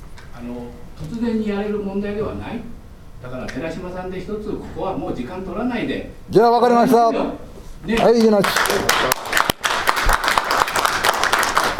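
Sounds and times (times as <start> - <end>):
speech: 0.4 - 9.2
meeting room group applauding: 7.9 - 11.7.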